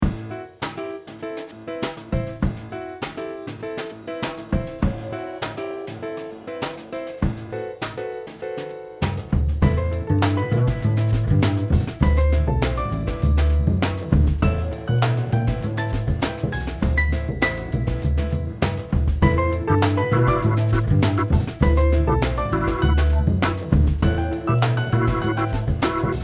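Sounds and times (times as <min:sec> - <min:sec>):
jazz music: 0:00.0 - 0:26.2.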